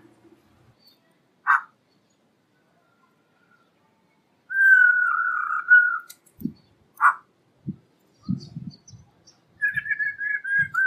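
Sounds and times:
black-throated laughingthrush song of whistles and a harsh burst: 4.5s - 6.1s, 9.6s - 10.8s.

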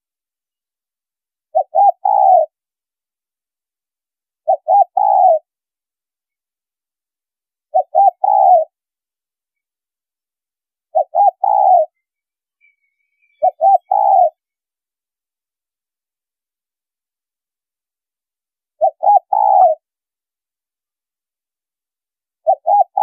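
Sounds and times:
spotted dove cooing: 1.5s - 2.6s, 4.4s - 5.5s, 7.7s - 8.8s, 10.9s - 12.0s, 13.3s - 14.5s, 18.8s - 19.9s, 22.4s - 23.0s.

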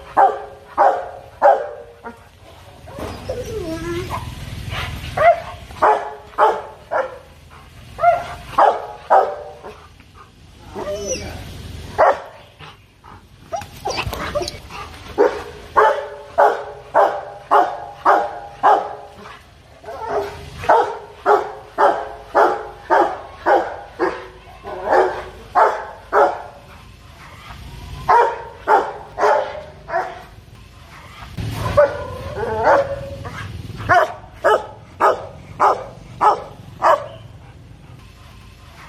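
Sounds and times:
dog barking: 0.2s - 1.9s, 5.2s - 7.3s, 8.0s - 9.7s, 12.0s - 12.4s, 15.2s - 19.1s, 19.9s - 26.5s, 28.1s - 30.2s, 31.7s - 33.1s, 33.9s - 37.3s
dog whining: 2.9s - 4.3s, 10.7s - 11.4s, 13.5s - 14.6s.

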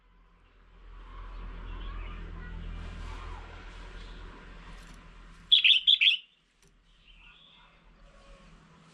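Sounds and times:
Red-whiskered bulbul chirping: 5.5s - 6.4s.

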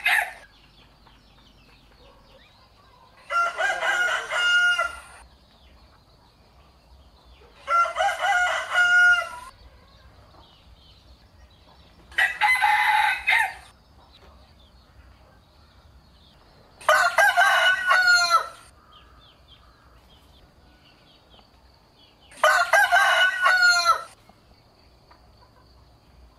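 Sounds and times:
rooster crowing: 0.0s - 0.5s, 2.8s - 5.2s, 7.6s - 10.2s, 12.1s - 13.7s, 16.8s - 18.7s, 22.4s - 24.2s.

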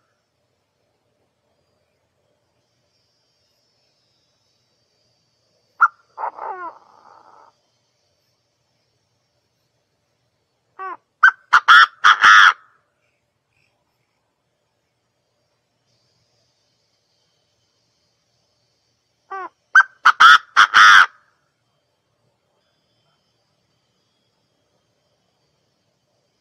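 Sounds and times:
partridge calling: 5.8s - 7.5s, 10.8s - 12.6s, 19.3s - 21.2s.

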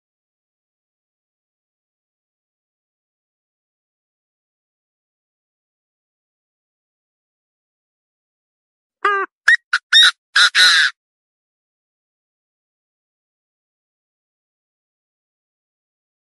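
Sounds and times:
partridge calling: 9.0s - 10.9s.

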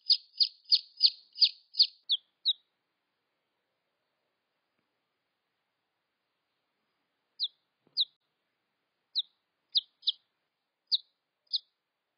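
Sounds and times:
red junglefowl chick peeps: 0.0s - 2.7s, 7.4s - 8.2s, 9.1s - 10.2s, 10.9s - 11.7s.

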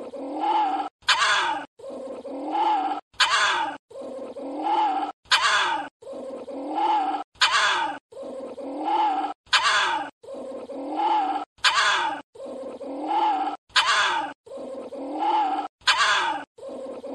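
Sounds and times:
small Indian civet moaning: 0.0s - 17.1s.

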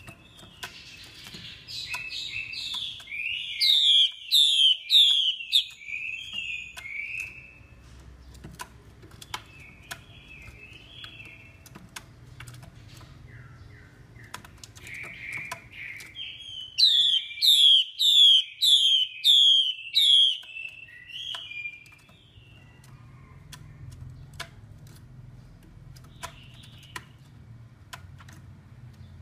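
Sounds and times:
sharp clicks: 0.0s - 17.3s, 19.7s - 29.2s
Chinese hwamei loud whistled song with warbles: 0.3s - 7.6s, 13.3s - 22.8s.

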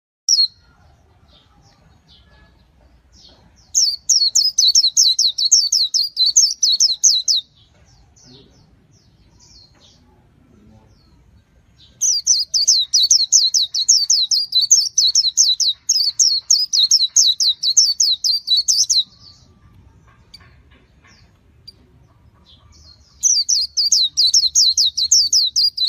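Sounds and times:
white-eye chirping song: 0.3s - 2.3s, 3.6s - 7.6s, 11.8s - 20.5s, 21.1s - 25.8s.

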